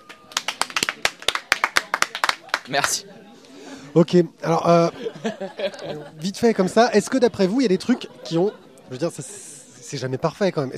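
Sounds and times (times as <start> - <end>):
audience applauding on request: 0.0 - 3.0
laughter: 1.8 - 9.8
speech: 2.7 - 3.2, 3.9 - 10.7.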